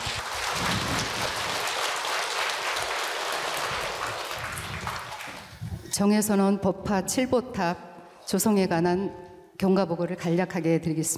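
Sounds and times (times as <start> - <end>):
audience applause: 0.0 - 5.6
speech: 6.0 - 11.1.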